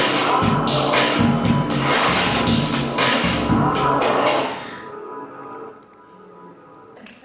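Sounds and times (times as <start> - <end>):
robot: 0.1 - 4.7.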